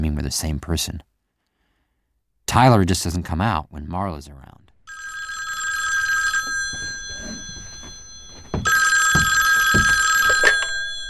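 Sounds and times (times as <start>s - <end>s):
speech: 0.3s - 1.1s, 2.5s - 4.6s
telephone ringing: 4.9s - 11.0s.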